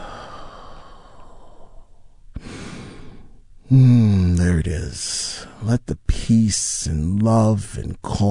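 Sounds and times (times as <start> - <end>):
deep breath in and long exhalation during a guided calming exercise: 0.0 - 4.1
steady hiss: 0.0 - 8.3
speech: 3.7 - 8.3.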